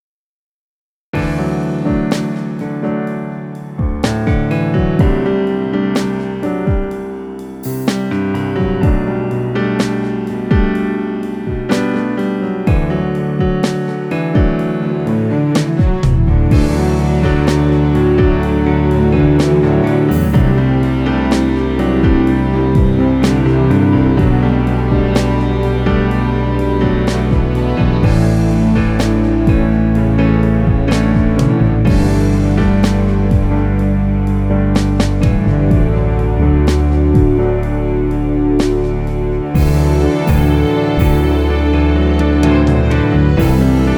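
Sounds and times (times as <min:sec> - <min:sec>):
sweet strings: 0:01.5 - 0:43.9.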